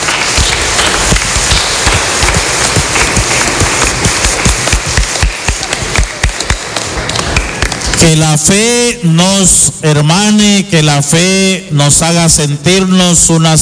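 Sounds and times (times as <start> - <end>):
audience applause for pilgrims: 0.0 - 8.2
speech: 8.0 - 13.6.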